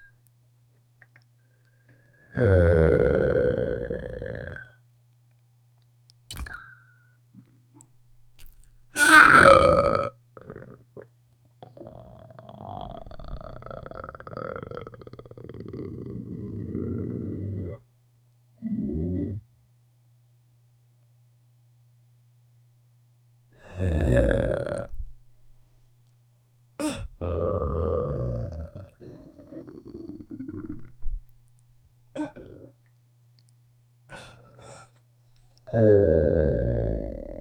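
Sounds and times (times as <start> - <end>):
stomach growling from digestion: 2.4 - 4.7, 8.4 - 17.9, 23.7 - 25.2, 26.8 - 31.4, 32.2 - 32.9, 35.7 - 37.4.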